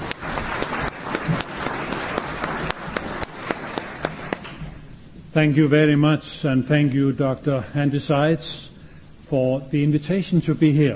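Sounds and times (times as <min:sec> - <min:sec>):
audience applause at a church conference welcoming a speaker: 0:00.0 - 0:04.7
speech: 0:05.3 - 0:08.7, 0:09.3 - 0:10.9.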